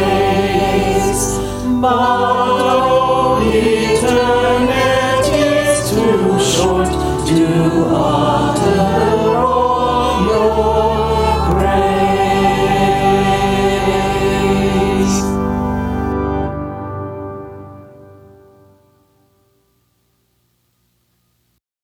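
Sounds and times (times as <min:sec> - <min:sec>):
SATB four-part choir singing: 0:00.0 - 0:16.2.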